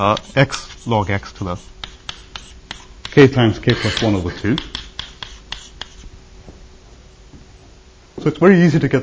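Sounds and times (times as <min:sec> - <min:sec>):
speech: 0:00.0 - 0:01.8, 0:03.2 - 0:04.7, 0:08.2 - 0:09.0
writing on a board during a math lecture: 0:00.0 - 0:06.1.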